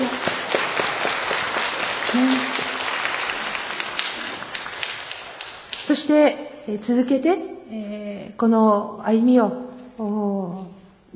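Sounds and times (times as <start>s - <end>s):
audience applause: 0.0s - 5.8s
speech: 2.1s - 2.5s, 6.0s - 11.1s.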